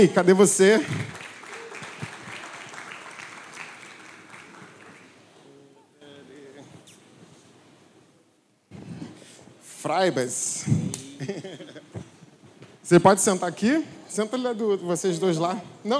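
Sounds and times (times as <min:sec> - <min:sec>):
speech: 0:00.0 - 0:01.2, 0:09.9 - 0:11.6, 0:12.9 - 0:15.9
audience applauding: 0:00.0 - 0:05.6
voices calling out: 0:00.2 - 0:07.5
laughter: 0:00.6 - 0:06.5, 0:10.9 - 0:12.4.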